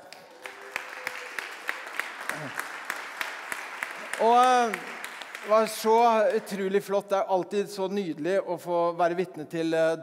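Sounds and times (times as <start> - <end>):
audience applause: 0.0 - 6.6
speech: 2.4 - 2.7, 4.2 - 10.0.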